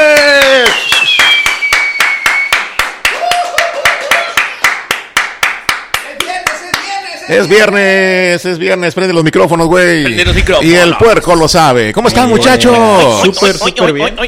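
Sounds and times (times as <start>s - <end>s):
applause: 0.0s - 7.1s
speech: 7.3s - 14.2s
laughter: 12.0s - 14.2s.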